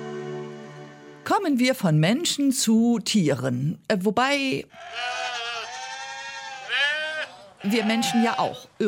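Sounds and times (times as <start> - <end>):
speech: 1.4 - 5.2, 7.6 - 8.8
sheep at a convent bleating: 4.7 - 8.6.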